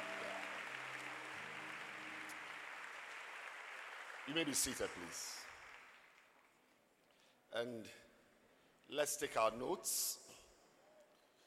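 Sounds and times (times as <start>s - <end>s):
audience clapping hands: 0.0s - 6.7s
speech: 4.2s - 5.4s, 7.5s - 8.1s, 8.9s - 10.4s.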